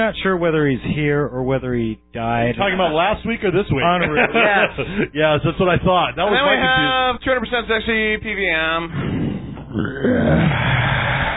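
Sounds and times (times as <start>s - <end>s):
speech: 0.0s - 10.7s
laughter: 2.7s - 7.0s
deep belch: 9.1s - 11.3s.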